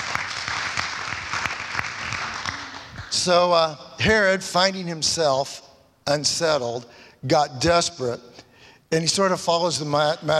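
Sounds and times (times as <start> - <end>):
audience applause: 0.0 - 3.3
speech: 3.2 - 10.3.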